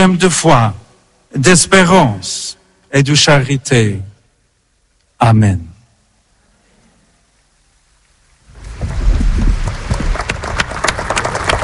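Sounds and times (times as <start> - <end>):
speech: 0.0 - 4.1, 5.2 - 5.7
crowd applauding after a homily: 9.4 - 11.6
sharp individual claps: 9.9 - 11.6.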